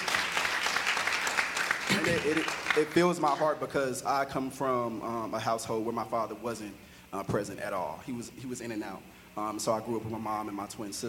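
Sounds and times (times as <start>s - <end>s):
audience hand clapping: 0.0s - 3.6s
speech: 2.1s - 11.0s.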